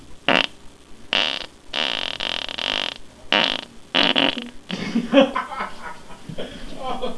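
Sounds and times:
wet farts: 0.3 - 0.5, 1.1 - 4.5
laughter: 4.7 - 7.1.

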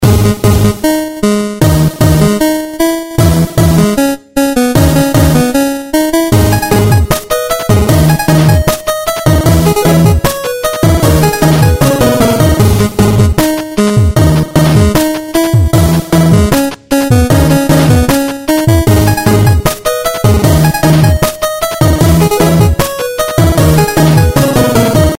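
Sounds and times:
8-bit music: 0.0 - 25.1.

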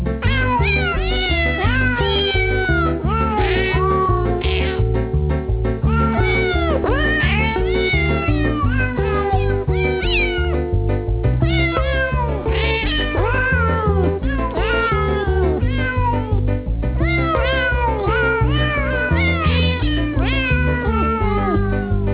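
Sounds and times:
cat singing: 0.2 - 5.1, 5.8 - 16.4, 17.0 - 22.1.

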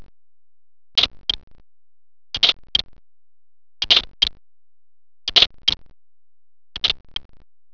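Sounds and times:
click: 1.0 - 1.6, 2.4 - 3.0, 3.8 - 4.4, 5.3 - 6.0, 6.7 - 7.5.

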